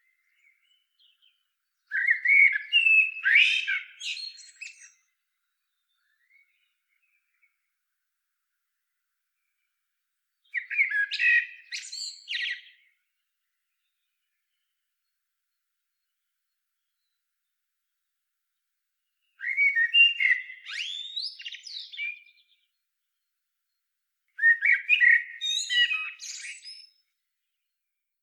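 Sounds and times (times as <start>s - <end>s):
Eurasian blackbird singing: 0.1s - 7.5s, 10.4s - 13.0s, 19.2s - 23.3s, 24.4s - 27.0s.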